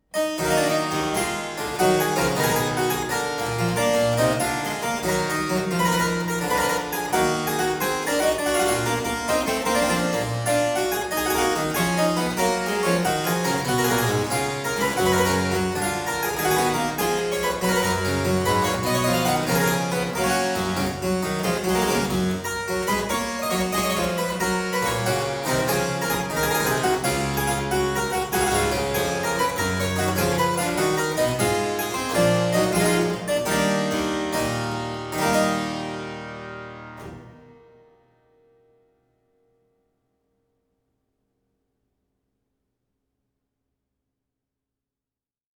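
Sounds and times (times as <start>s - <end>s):
E minor gigue on harpsichord: 0.2s - 35.9s.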